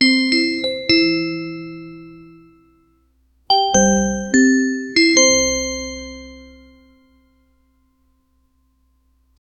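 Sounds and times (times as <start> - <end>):
success sound for word: 0.0 - 7.3.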